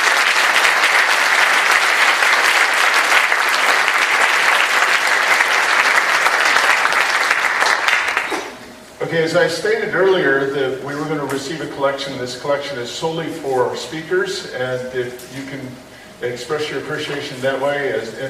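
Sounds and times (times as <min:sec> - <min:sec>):
audience applause: 0:00.0 - 0:08.6
speech: 0:09.2 - 0:18.2.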